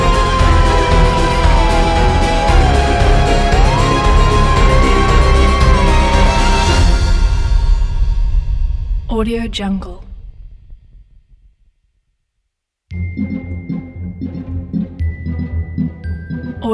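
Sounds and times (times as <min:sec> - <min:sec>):
spooky fun Halloween music: 0:00.0 - 0:08.7, 0:12.9 - 0:16.7.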